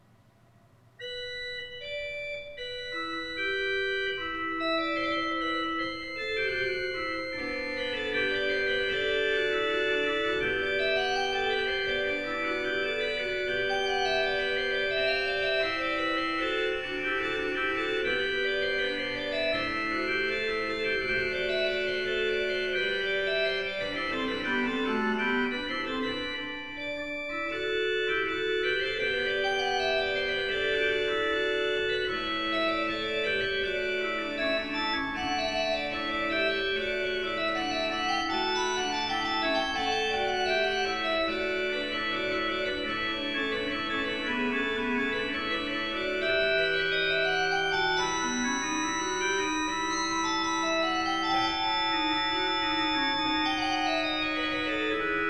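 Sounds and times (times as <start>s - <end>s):
organ chorale prelude: 0.9s - 55.2s.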